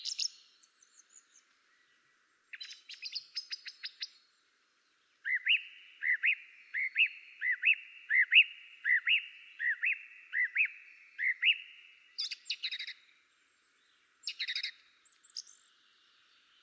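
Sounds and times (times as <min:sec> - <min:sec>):
song thrush singing: 0:00.0 - 0:16.6.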